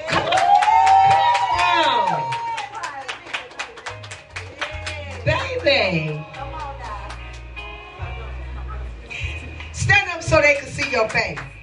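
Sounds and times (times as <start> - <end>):
audience clapping hands: 0.0 - 7.6, 10.5 - 11.6.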